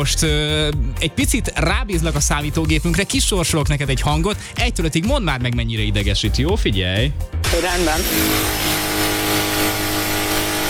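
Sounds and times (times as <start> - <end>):
speech: 0.0 - 8.8
power drill running: 7.4 - 10.6.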